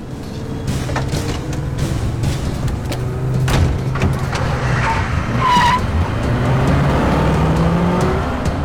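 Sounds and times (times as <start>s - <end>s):
car engines roaring in a chase scene: 0.0s - 8.6s
tire squeal: 4.2s - 6.5s.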